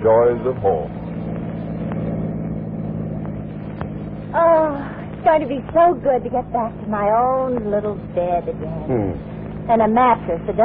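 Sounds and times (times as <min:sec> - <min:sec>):
speech: 0:00.0 - 0:01.0, 0:04.3 - 0:10.6
car driving through New York City traffic: 0:00.0 - 0:10.6.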